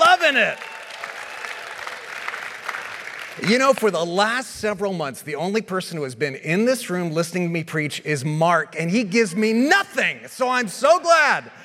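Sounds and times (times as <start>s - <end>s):
audience cheering: 0.0s - 3.8s
speech: 0.3s - 0.7s, 3.4s - 11.6s.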